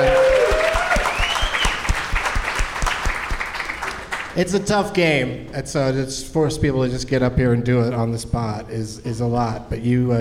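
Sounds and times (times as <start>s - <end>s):
audience applause at a live comedy game show: 0.0s - 4.4s
speech: 4.4s - 10.1s.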